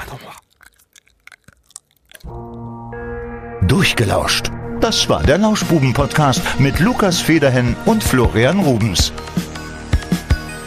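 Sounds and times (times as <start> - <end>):
chewing gum close to the microphone: 0.0 - 2.8, 9.9 - 10.5
loud sustained droning horn-like tone: 2.3 - 5.6
speech: 3.6 - 9.4.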